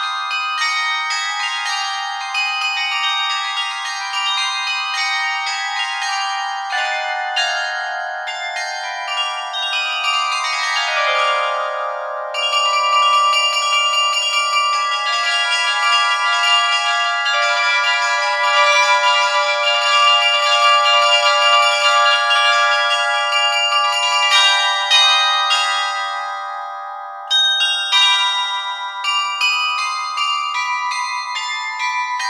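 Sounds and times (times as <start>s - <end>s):
glockenspiel playing a toccata: 0.0s - 32.2s.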